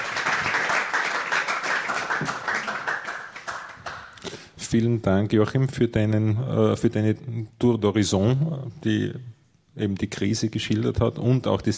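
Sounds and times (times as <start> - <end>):
audience applause: 0.0 - 4.2
speech: 4.7 - 11.7.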